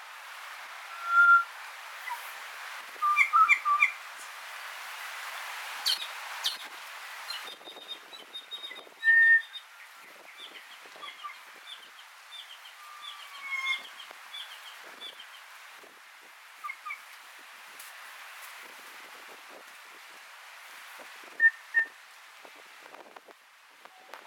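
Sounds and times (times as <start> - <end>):
kokako whistled calls: 0.9 - 2.3, 3.0 - 4.0, 7.3 - 9.6, 11.0 - 14.6.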